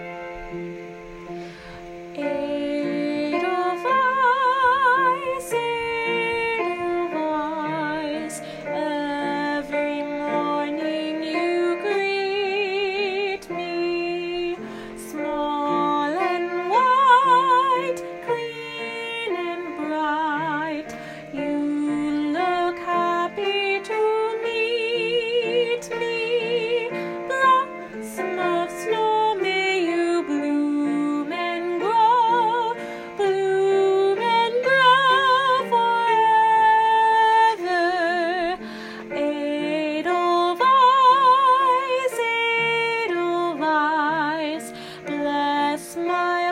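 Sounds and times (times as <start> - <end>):
vocals: 1.2 - 46.4.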